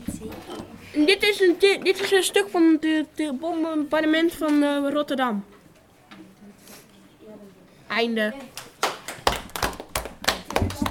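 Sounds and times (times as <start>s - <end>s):
speech: 1.0s - 5.5s, 7.9s - 8.6s
audience clapping: 8.4s - 10.8s.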